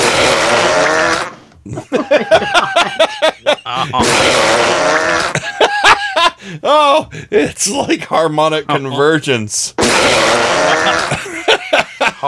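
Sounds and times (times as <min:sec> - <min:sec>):
burp: 0:00.0 - 0:01.4, 0:03.8 - 0:05.4, 0:09.8 - 0:11.2
laughter: 0:01.6 - 0:08.0, 0:10.1 - 0:12.2
speech: 0:01.7 - 0:02.5, 0:07.0 - 0:11.2.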